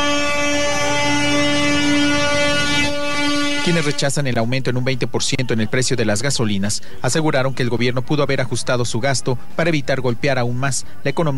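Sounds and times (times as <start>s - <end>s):
car horns honking: 0.0s - 4.4s
speech: 3.6s - 11.3s.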